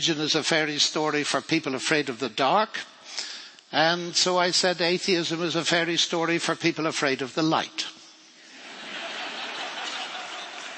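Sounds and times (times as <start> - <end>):
speech: 0.0 - 8.0
laughter: 8.5 - 10.7
audience clapping: 9.4 - 10.7.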